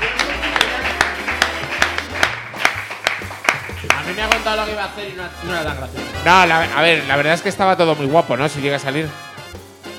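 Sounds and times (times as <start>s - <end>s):
applause: 0.0s - 4.7s
speech: 4.1s - 9.2s.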